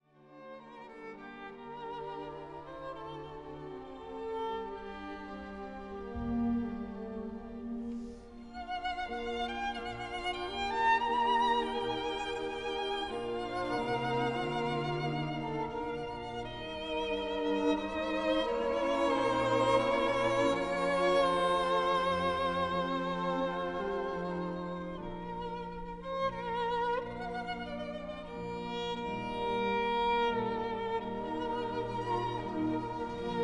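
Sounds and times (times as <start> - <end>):
sonata for violin and continuo in G minor: 0.0 - 33.4.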